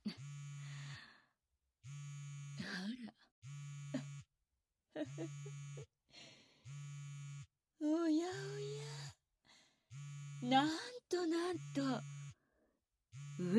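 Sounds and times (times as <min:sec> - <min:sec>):
phone vibrating with incoming call: 0:00.0 - 0:01.2, 0:01.8 - 0:04.3, 0:05.0 - 0:05.9, 0:06.6 - 0:09.2, 0:09.9 - 0:12.5, 0:13.1 - 0:13.5
speech: 0:05.0 - 0:05.9, 0:10.5 - 0:12.1, 0:13.4 - 0:13.5.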